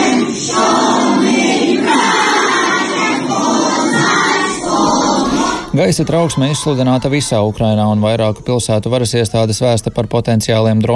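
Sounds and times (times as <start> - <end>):
children singing an anthem in a shelter: 0.0 - 7.8
speech: 5.8 - 10.9.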